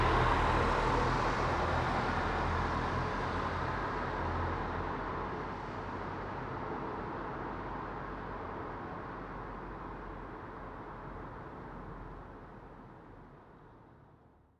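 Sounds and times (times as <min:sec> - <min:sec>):
slow city traffic: 0:00.0 - 0:14.2.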